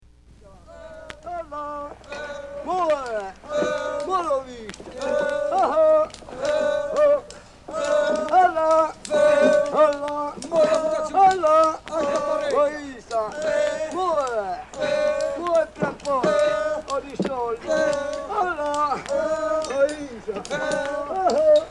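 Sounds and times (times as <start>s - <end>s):
marble workers singing lament songs: 0.1s - 21.6s
laughter: 0.4s - 21.6s.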